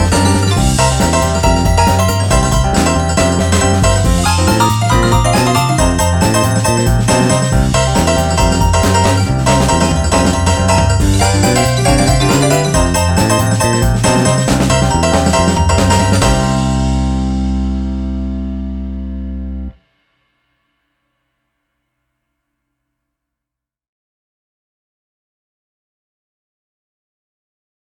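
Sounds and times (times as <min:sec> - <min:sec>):
kids blues music: 0:00.0 - 0:19.7.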